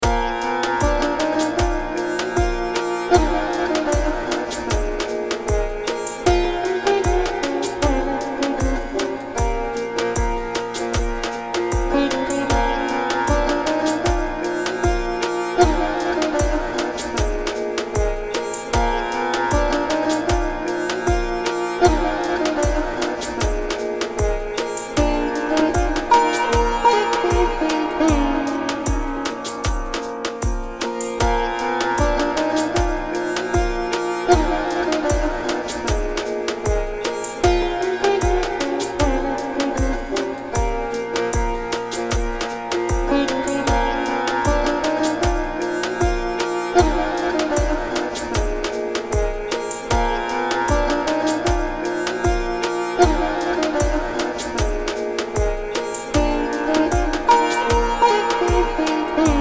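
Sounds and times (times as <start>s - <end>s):
Indian oriental tune: 0.0s - 59.3s.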